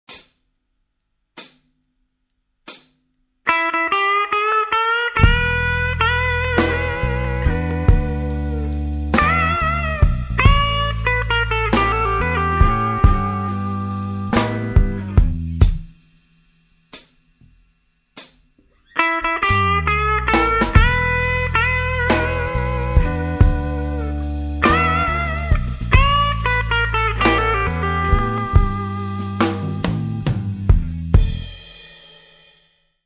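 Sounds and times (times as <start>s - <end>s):
blues jazz music: 3.5s - 15.9s, 18.8s - 31.5s.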